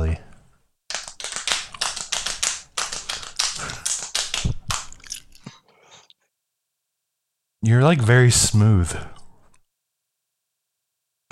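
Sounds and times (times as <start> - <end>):
bellies being slapped: 0.9 - 5.0
speech: 7.7 - 9.2.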